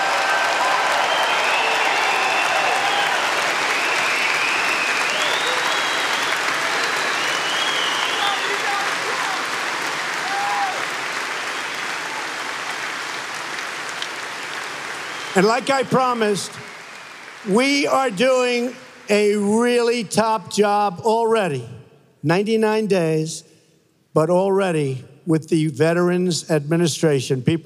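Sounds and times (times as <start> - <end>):
audience applause for veterans: 0.0 - 19.4
speech: 15.4 - 16.7, 17.4 - 23.5, 24.2 - 27.6.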